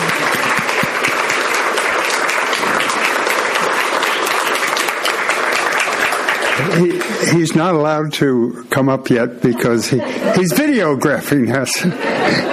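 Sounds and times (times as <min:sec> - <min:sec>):
laughter: 0:00.0 - 0:01.5, 0:06.4 - 0:07.6, 0:09.1 - 0:12.5
crowd clapping: 0:00.0 - 0:07.6
speech: 0:06.8 - 0:12.5.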